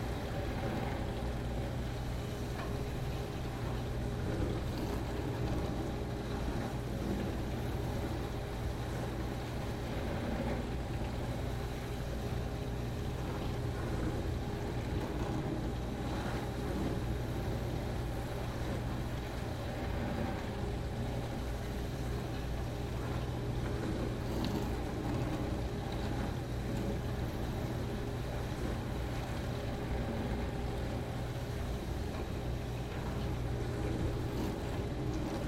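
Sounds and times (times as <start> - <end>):
dishwasher running rinse cycle: 0.0 - 35.4.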